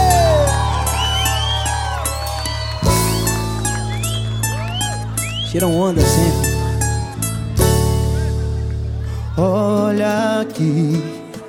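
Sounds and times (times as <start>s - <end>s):
scattered clapping: 0.0s - 5.6s
crowd cheering and whooping: 0.0s - 7.0s
steady loud musical backdrop: 0.0s - 9.4s
speech: 5.5s - 6.5s, 10.6s - 11.4s.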